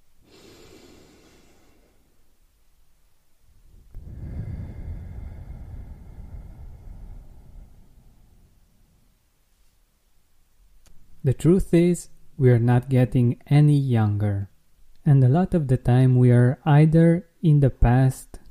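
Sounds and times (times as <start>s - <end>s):
guided deep breath in and out: 0.2s - 2.3s, 3.7s - 9.0s
speech: 11.2s - 14.5s, 15.1s - 18.4s.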